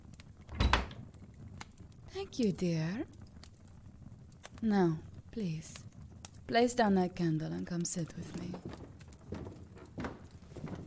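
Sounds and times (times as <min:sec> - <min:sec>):
door shutting with a rattle: 0:00.5 - 0:01.0
speech: 0:02.2 - 0:03.2, 0:04.6 - 0:05.9, 0:06.5 - 0:08.8.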